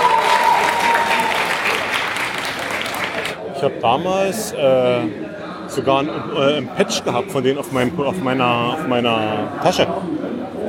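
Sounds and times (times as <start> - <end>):
audience applause: 0.0 - 3.4
speech: 3.6 - 10.4.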